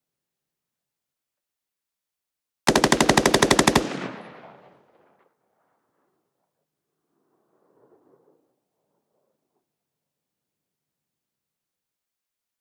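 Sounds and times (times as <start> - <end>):
XM8 battle rifle automatic fire, distant exterior: 2.7 - 5.2.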